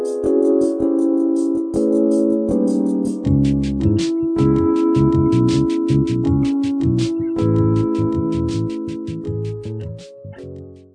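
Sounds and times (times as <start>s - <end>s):
smooth jazz music in a cafe: 0.0s - 10.9s.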